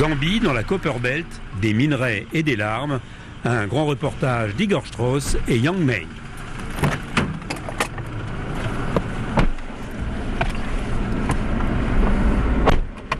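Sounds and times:
speech: 0.0 - 6.9
car interior road rumble leaving Kitwe, Zambia: 0.0 - 13.1.

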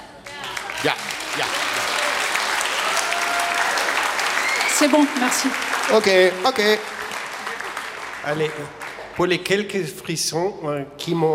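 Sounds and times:
concert audience applause calling for an encore at the Festival Perspectives 2025: 0.2 - 9.4
speech: 0.8 - 1.7, 4.8 - 7.0, 8.2 - 11.3.

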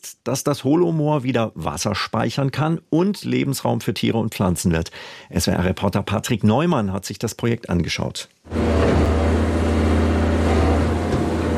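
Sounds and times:
speech: 0.0 - 8.9
heavy excavators removing trees from a moor: 8.5 - 11.5.

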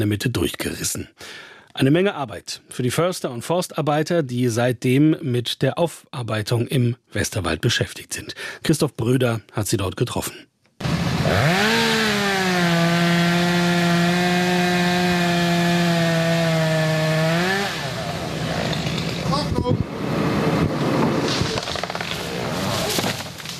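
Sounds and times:
speech: 0.0 - 10.5, 11.2 - 11.8
chainsaws cutting wood in forest: 10.8 - 23.5.

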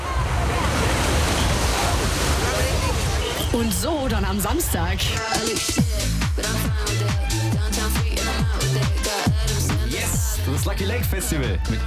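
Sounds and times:
wind at the Strandbad beach in Losheim: 0.0 - 4.2
waves at the Strandbad beach in Losheim: 0.0 - 11.8
speech: 3.6 - 9.2, 10.4 - 11.8.

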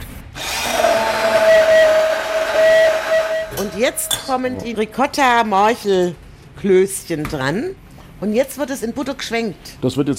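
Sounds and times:
mixer blending a wild garlic sauce: 0.4 - 4.4
speech: 3.8 - 10.1.

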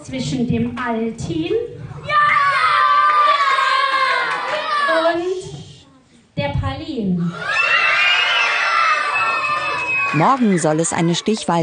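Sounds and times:
speech: 0.0 - 2.2, 6.9 - 7.6, 10.1 - 11.6
children screaming with joy at a school election result: 2.0 - 5.1, 7.3 - 11.5.

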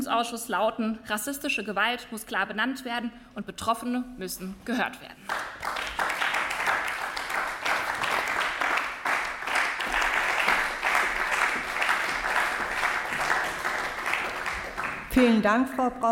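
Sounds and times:
speech: 0.0 - 5.6, 15.2 - 16.0
applause in parliament: 5.2 - 15.4.

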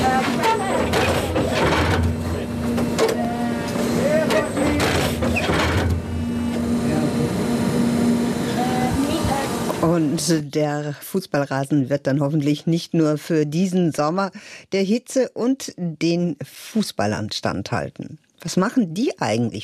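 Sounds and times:
Italian specialist firm's stitching vehicle inserting fibres into stadium turf: 0.0 - 10.4
speech: 10.2 - 19.6.

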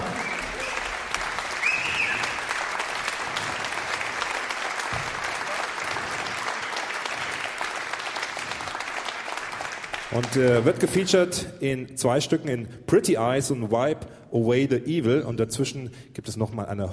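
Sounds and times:
audience applause: 0.0 - 10.8
speech: 10.2 - 16.9.

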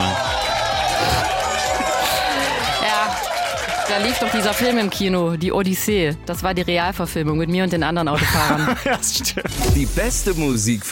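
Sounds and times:
scattered cheers: 0.0 - 5.0
large crowd applause: 0.0 - 5.2
laughter: 1.0 - 3.0, 8.1 - 9.7
speech: 3.9 - 10.8.

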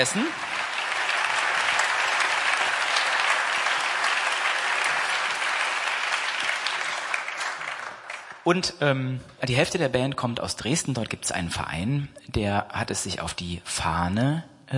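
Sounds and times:
speech: 0.0 - 0.5, 8.4 - 14.7
concert audience applauding the lighting crew: 0.0 - 8.5.

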